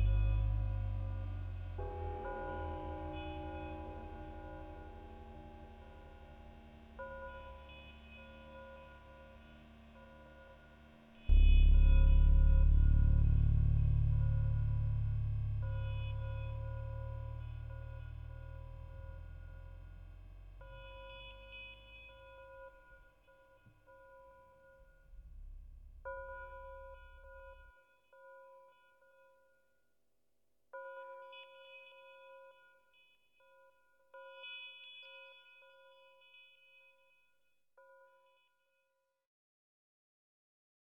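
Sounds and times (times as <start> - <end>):
bass: 0.0 - 27.8
dark cracked bells: 0.0 - 28.5.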